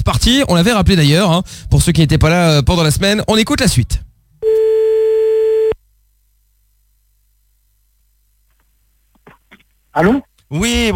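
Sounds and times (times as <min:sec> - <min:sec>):
speech: 0:00.0 - 0:04.6, 0:10.0 - 0:10.9
telephone busy tone after a call is cut off: 0:04.4 - 0:05.8.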